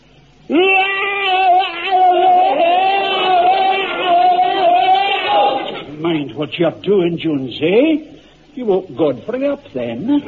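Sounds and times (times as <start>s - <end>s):
man bayonet charge battle scream: 0.5s - 5.9s
speech: 6.4s - 10.2s.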